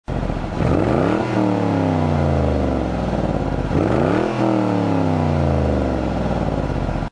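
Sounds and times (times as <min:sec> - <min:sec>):
Mustang Bullitt engine revving: 0:00.1 - 0:07.1.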